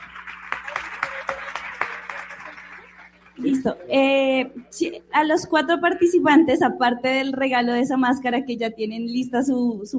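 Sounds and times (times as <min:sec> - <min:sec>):
audience applause: 0:00.0 - 0:04.1
speech: 0:03.4 - 0:09.9.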